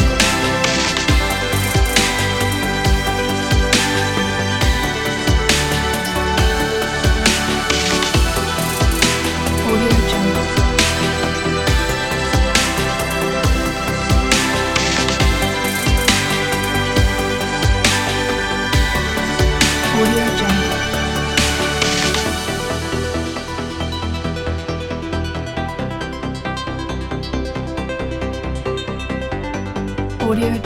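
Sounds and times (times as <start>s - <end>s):
cinematic soundscape music: 0.0s - 30.6s.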